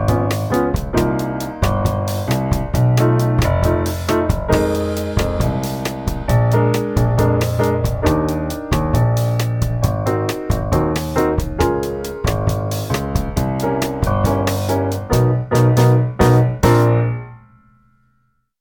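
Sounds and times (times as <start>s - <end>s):
bossa nova bass line: 0.0s - 17.2s
chords played with the right hand: 0.0s - 17.6s.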